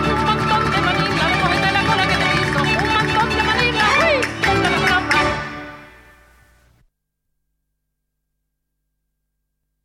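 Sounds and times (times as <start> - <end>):
sevillanas repique music: 0.0 - 6.8.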